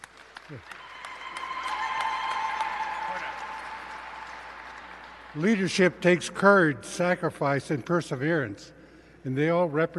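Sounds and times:
audience applause: 0.0 - 5.9
speech: 0.5 - 0.8, 5.3 - 9.9.

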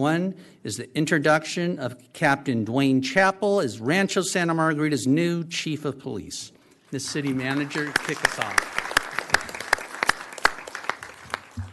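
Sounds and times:
speech: 0.0 - 8.8
audience applause: 7.0 - 11.7.

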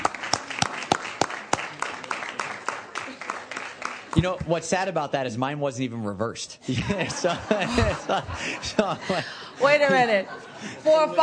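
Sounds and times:
audience clapping: 0.0 - 5.0
speech: 4.2 - 11.2
laughter: 6.6 - 11.2.

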